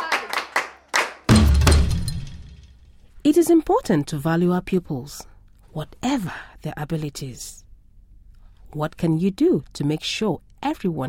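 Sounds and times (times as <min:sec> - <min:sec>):
class of pupils clapping: 0:00.0 - 0:01.4
speech: 0:03.3 - 0:07.6, 0:08.7 - 0:11.0.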